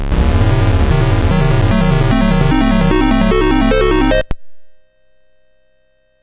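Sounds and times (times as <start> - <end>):
SID MOS6581R4 chiptune music: 0.1 - 4.3.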